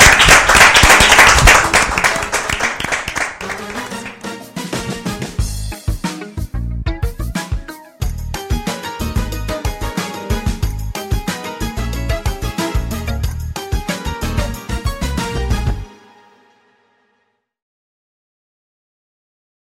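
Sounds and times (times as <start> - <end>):
audience applause: 0.0 - 4.2
rhythmic music track with steady bass beat: 3.6 - 15.9.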